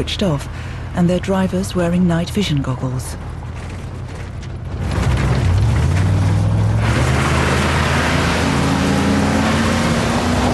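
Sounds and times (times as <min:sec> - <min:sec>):
speech: 0:00.0 - 0:03.4
military vehicles driving fast across desert: 0:00.0 - 0:10.5.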